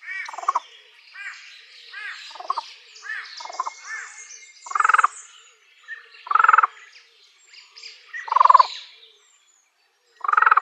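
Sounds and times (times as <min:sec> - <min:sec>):
fan-tailed raven croaking calls: 0:00.0 - 0:00.6, 0:02.0 - 0:02.6, 0:03.4 - 0:03.9, 0:04.6 - 0:05.2, 0:06.2 - 0:06.8, 0:08.3 - 0:08.7, 0:10.2 - 0:10.6.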